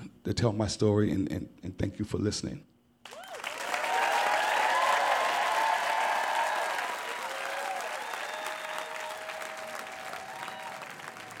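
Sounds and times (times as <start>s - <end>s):
speech: 0.2s - 2.7s
standing ovation from a storytelling audience in New Orleans: 3.1s - 11.3s.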